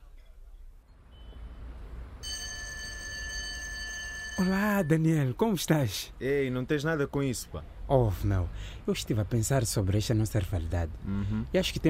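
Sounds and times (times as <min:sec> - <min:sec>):
telephone ringing: 0:02.2 - 0:05.0
speech: 0:04.4 - 0:11.8.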